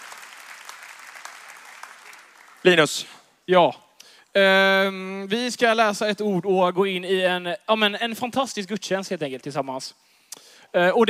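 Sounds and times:
audience applause at a church service: 0.0s - 2.9s
speech: 2.6s - 3.8s, 4.4s - 10.1s, 10.7s - 11.0s.

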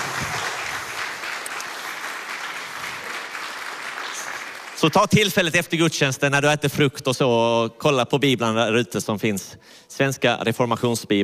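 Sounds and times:
applause: 0.0s - 5.5s
speech: 4.8s - 11.2s.

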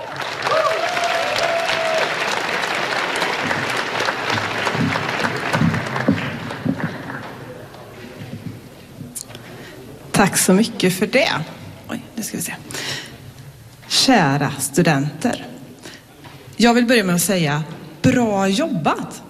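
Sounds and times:
audience applause: 0.0s - 8.8s
speech: 10.2s - 11.6s, 14.1s - 15.5s, 16.6s - 19.2s.

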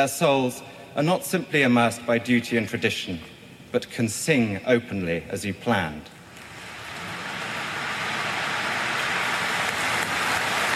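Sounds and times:
speech: 0.0s - 6.2s
huge crowd applauding outside a church: 6.5s - 10.7s.

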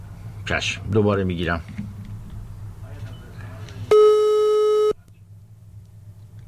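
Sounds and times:
low noise: 0.0s - 6.4s
speech: 0.5s - 1.8s
phone line disconnected tone after a dropped call: 3.9s - 5.0s.

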